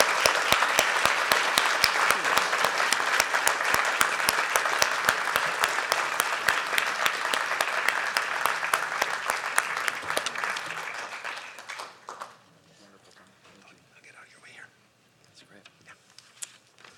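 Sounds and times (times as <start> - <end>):
audience applause: 0.0 - 12.4.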